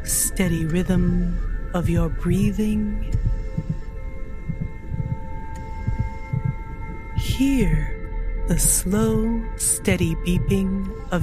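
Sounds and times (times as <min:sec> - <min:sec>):
constant electronic hum: 0:00.0 - 0:11.2
speech: 0:00.1 - 0:03.2, 0:07.4 - 0:11.2
slow steady heartbeat: 0:00.1 - 0:11.2.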